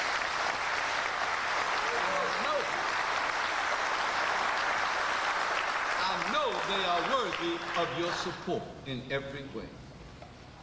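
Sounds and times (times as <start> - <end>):
audience applause: 0.0 - 8.4
speech: 7.2 - 9.8.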